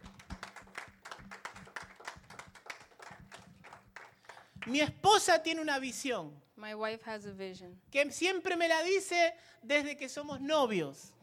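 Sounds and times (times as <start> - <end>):
audience applause: 0.0 - 4.8
speech: 4.6 - 11.2.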